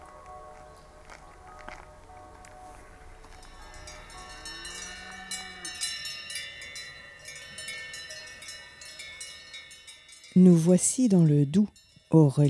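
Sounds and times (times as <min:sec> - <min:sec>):
bells worn by grazing farm animals clanking: 0:03.2 - 0:12.4
speech: 0:10.4 - 0:12.4.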